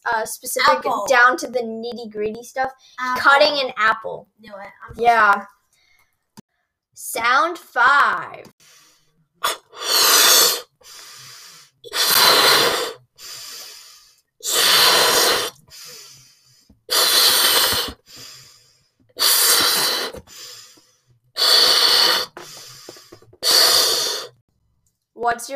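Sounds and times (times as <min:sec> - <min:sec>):
speech: 0:00.1 - 0:05.6, 0:07.0 - 0:08.8, 0:09.4 - 0:10.1, 0:25.2 - 0:25.5
person blowing up a balloon: 0:08.6 - 0:20.8, 0:21.4 - 0:24.4
breath intake: 0:08.6 - 0:24.4.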